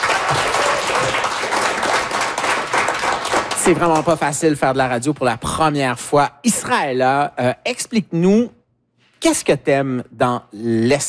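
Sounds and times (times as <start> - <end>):
audience applauding loudly: 0.0 - 4.4
speech: 3.7 - 8.6, 9.2 - 11.0.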